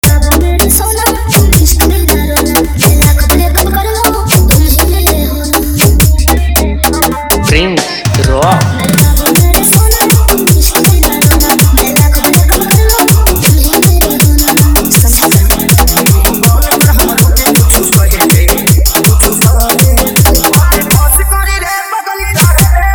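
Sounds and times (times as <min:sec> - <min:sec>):
hard dirty Dutch electronic music mix: 0:00.0 - 0:22.9.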